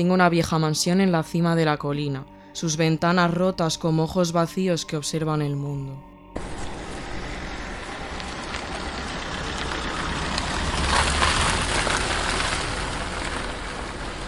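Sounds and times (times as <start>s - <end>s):
speech: 0.0s - 6.1s
car driving slowly along a deserted road at night: 6.4s - 14.2s.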